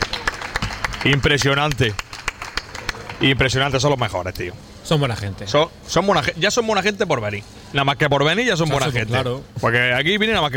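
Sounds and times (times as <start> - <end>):
audience clapping: 0.0 - 3.6
speech: 1.0 - 2.1, 3.2 - 10.5.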